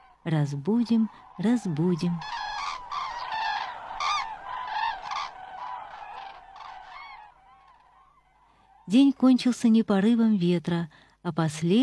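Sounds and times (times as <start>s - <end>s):
flock of cranes calling: 0.0s - 9.1s
speech: 0.2s - 2.4s, 8.9s - 11.8s.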